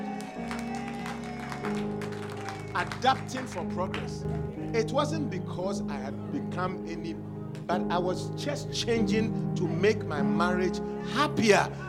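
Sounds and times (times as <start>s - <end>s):
crowd, audience clapping: 0.0s - 4.6s
speech: 2.8s - 11.8s.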